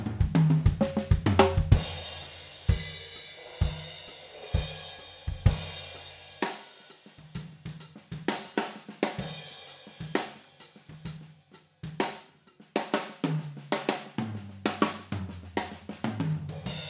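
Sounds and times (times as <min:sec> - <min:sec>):
drums recorded with spaced figure-8 high-pass filtered overhead microphones: 0:00.0 - 0:16.8.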